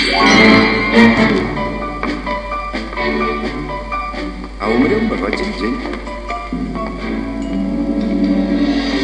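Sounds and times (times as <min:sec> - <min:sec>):
tango music: 0:00.2 - 0:09.0.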